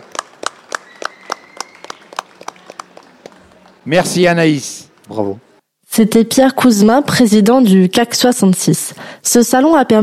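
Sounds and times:
audience applause: 0:00.0 - 0:03.8
speech: 0:03.9 - 0:10.0.

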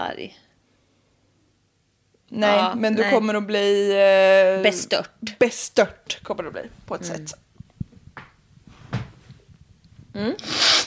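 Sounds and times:
speech: 0:00.0 - 0:00.5, 0:02.3 - 0:07.4, 0:10.2 - 0:10.7
soft knocks: 0:07.6 - 0:09.5
person blowing nose: 0:10.2 - 0:10.8.

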